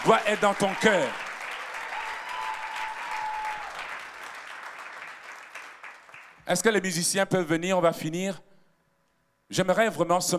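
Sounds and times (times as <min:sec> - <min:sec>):
speech: 0:00.0 - 0:01.2, 0:06.5 - 0:08.5, 0:09.5 - 0:10.3
church congregation applauding during a French-language service: 0:00.0 - 0:06.6.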